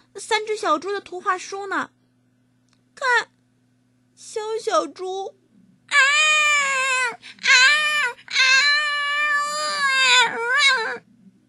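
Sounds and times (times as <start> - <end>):
speech: 0.2 - 2.0, 3.0 - 3.4, 4.2 - 5.4, 6.6 - 8.3
baby crying in loud high-pitched wails: 5.9 - 11.0.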